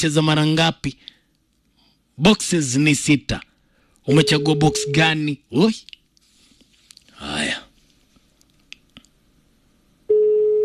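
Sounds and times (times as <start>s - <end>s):
speech: 0.0s - 1.2s, 2.2s - 6.0s
steady telephone tone: 4.1s - 5.1s, 10.1s - 10.6s.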